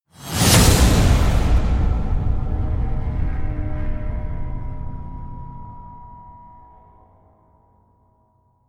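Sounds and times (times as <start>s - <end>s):
whoosh: 0.2s - 6.9s
evil slams: 0.3s - 7.2s.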